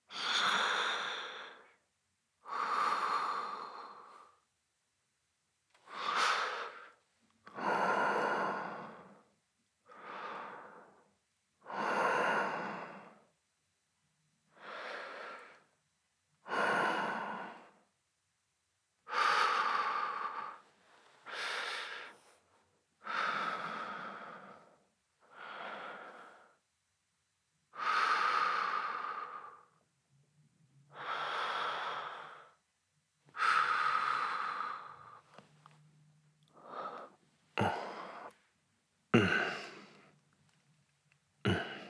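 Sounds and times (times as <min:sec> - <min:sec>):
person breathing in sleep: 0:00.1 - 0:01.8, 0:02.4 - 0:04.4, 0:05.9 - 0:13.3, 0:14.5 - 0:15.7, 0:16.4 - 0:17.8, 0:19.1 - 0:26.6, 0:27.7 - 0:29.8, 0:30.9 - 0:32.6, 0:33.3 - 0:35.4, 0:36.5 - 0:38.4, 0:39.2 - 0:40.1, 0:41.4 - 0:41.8.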